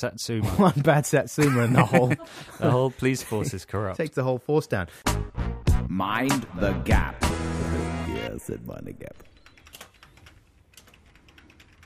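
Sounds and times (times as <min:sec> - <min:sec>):
speech: 0:00.0 - 0:09.3
laughter: 0:00.4 - 0:03.9
computer keyboard typing: 0:09.3 - 0:11.8.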